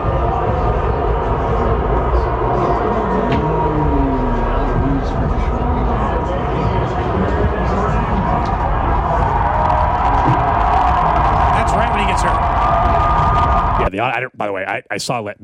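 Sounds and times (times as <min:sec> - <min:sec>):
stadium crowd cheering: 0:00.0 - 0:13.9
speech: 0:14.0 - 0:15.4.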